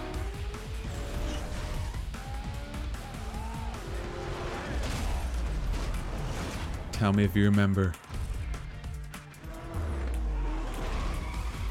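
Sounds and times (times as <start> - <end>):
engine roar in a racing video game: 0.0 - 5.5, 9.2 - 11.6
tires screeching in a racing video game: 0.0 - 6.8, 9.3 - 11.6
speech: 7.0 - 8.0.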